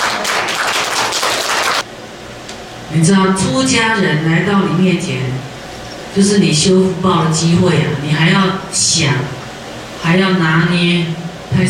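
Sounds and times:
audience clapping: 0:00.0 - 0:01.9
speech: 0:02.9 - 0:05.5, 0:06.1 - 0:09.4, 0:10.0 - 0:11.6.

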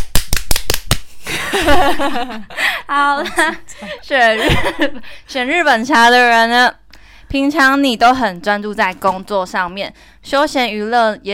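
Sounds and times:
hand claps: 0:00.0 - 0:01.1
laughter: 0:01.3 - 0:05.1
speech: 0:01.6 - 0:11.3.

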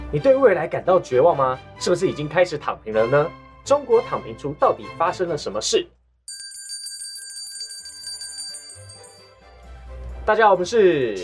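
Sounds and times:
speech: 0:00.1 - 0:06.0, 0:10.3 - 0:11.2
bright bell ding sound effect: 0:06.3 - 0:09.4.

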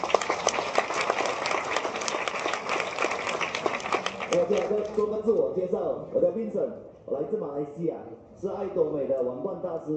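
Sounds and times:
audience applause in conference hall: 0:00.0 - 0:05.1
speech: 0:04.3 - 0:09.9.

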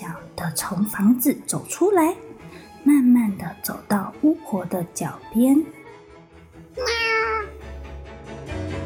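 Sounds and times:
speech: 0:00.4 - 0:05.8, 0:06.7 - 0:07.0
kitten meowing: 0:06.8 - 0:07.6.

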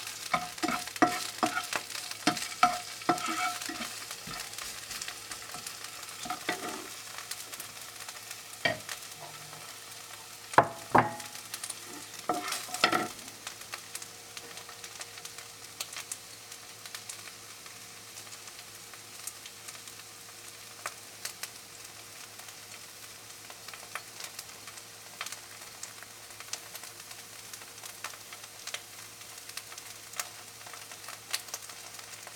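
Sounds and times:
spatula scrapes and clacks: 0:00.0 - 0:07.4, 0:08.6 - 0:09.9, 0:10.6 - 0:13.2
chopped scallion whites sizzling in a hot pan: 0:00.0 - 0:32.3.

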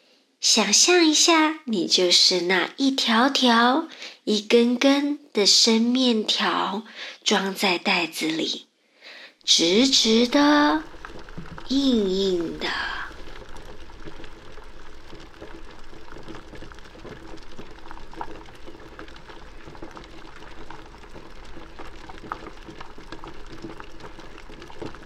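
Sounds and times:
speech: 0:00.4 - 0:08.7, 0:09.4 - 0:11.0, 0:11.7 - 0:13.0
pot of water at a rolling boil bubbling: 0:00.7 - 0:01.3, 0:09.4 - 0:25.0.

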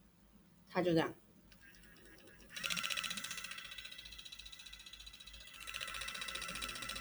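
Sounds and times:
speech: 0:00.7 - 0:01.2
beauty device head vibrating in reverse rotation: 0:01.6 - 0:06.9.

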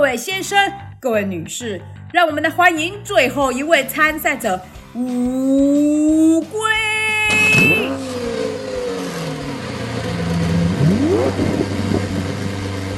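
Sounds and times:
speech: 0:00.0 - 0:06.9
red sports car engine revving and roaring: 0:07.5 - 0:12.9
steady low drone: 0:07.8 - 0:12.9.

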